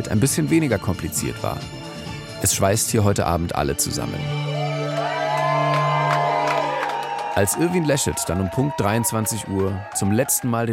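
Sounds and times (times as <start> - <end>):
speech: 0.0 - 1.8, 2.4 - 4.6, 7.4 - 10.7
club crowd applause and cheering: 4.2 - 10.7.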